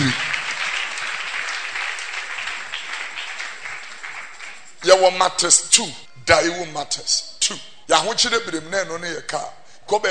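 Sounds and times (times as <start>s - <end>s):
audience clapping hands through a church song: 0.0s - 5.2s
speech: 4.9s - 10.1s.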